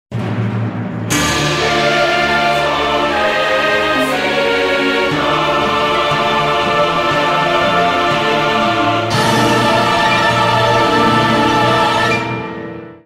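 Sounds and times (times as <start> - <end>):
intro music: 0.9 - 12.7.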